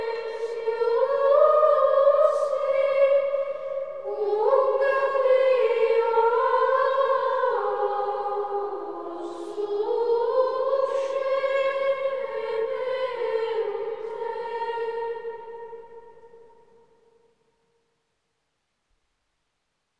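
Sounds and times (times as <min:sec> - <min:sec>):
choir chanting an Ambrosian antiphon: 0:00.0 - 0:17.2.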